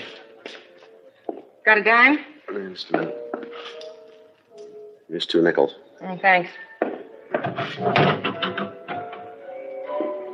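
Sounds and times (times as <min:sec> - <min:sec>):
speech: 0:01.6 - 0:03.8, 0:05.1 - 0:06.6, 0:07.5 - 0:08.4
door being opened or closed: 0:07.3 - 0:09.4.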